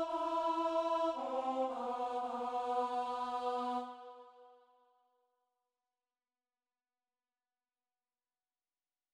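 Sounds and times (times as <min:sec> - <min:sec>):
alto voice singing a mass: 0:00.0 - 0:04.5.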